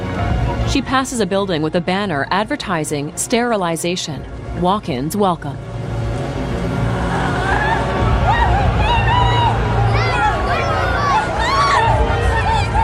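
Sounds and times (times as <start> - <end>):
speech: 0.7 - 5.7
mob murmuring outside an apartment complex: 6.5 - 12.8.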